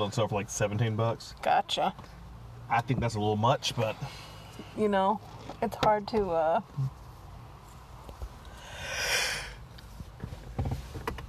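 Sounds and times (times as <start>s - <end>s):
speech: 0.0s - 7.0s
person yawning: 8.7s - 9.6s.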